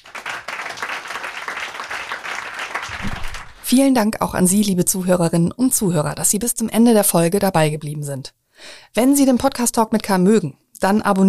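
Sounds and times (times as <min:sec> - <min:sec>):
audience applause: 0:00.0 - 0:03.6
speech: 0:03.0 - 0:11.2.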